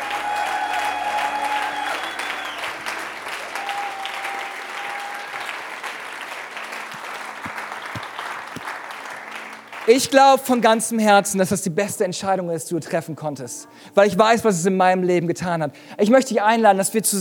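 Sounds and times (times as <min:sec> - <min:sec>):
audience applause: 0:00.0 - 0:10.2
speech: 0:09.9 - 0:17.1.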